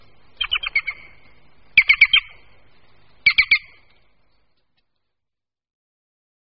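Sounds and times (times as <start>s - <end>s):
green woodpecker calls: 0.0s - 2.6s, 3.2s - 4.9s.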